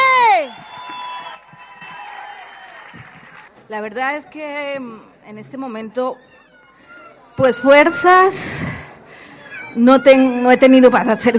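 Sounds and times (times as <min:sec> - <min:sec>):
crowd clapping: 0:00.1 - 0:03.7
speech: 0:03.7 - 0:06.4, 0:07.4 - 0:08.8, 0:09.8 - 0:11.3.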